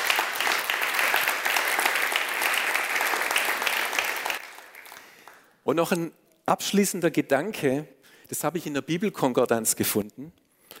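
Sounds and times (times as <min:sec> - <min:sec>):
audience applause: 0:00.0 - 0:05.5
speech: 0:05.7 - 0:10.4.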